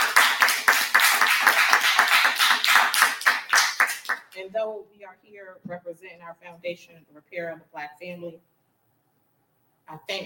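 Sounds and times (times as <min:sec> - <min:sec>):
audience applause: 0:00.0 - 0:04.3
speech: 0:04.5 - 0:08.6, 0:09.9 - 0:10.2.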